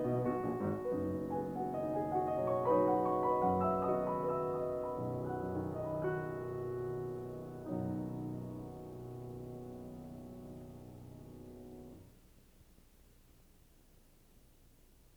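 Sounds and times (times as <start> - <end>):
piano prelude in B minor: 0.0 - 12.1.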